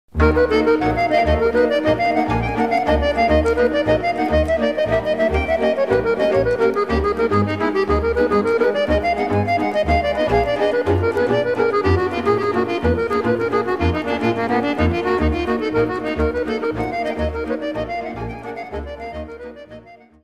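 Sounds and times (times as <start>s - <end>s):
Dobrogean geamparale folk dance music from Romania: 0.1s - 20.2s.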